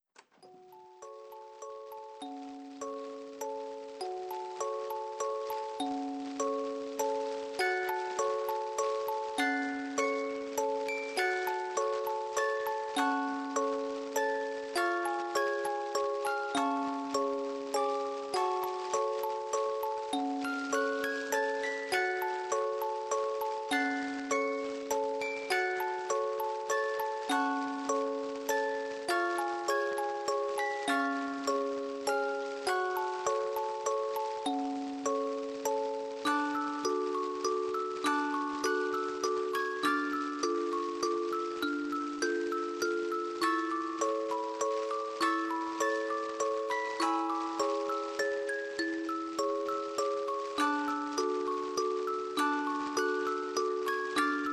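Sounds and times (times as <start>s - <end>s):
music box: 0.0s - 54.5s.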